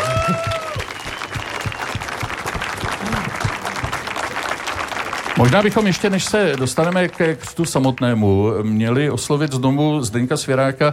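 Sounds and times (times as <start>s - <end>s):
audience applause at a book launch celebrating a theatre: 0.0s - 8.4s
speech: 0.3s - 0.6s, 5.4s - 10.9s.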